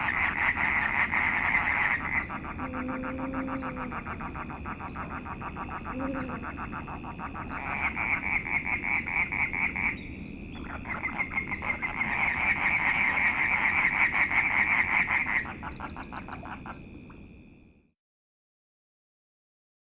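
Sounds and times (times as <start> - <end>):
chorus of Dhofar toads: 0.0 - 17.6
Arabian eagle owl hooting, presumed male: 0.8 - 6.9.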